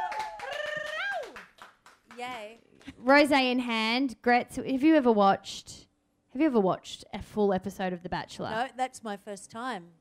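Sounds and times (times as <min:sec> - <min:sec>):
round of applause: 0:00.0 - 0:02.5
speech: 0:02.2 - 0:05.8, 0:06.4 - 0:09.9.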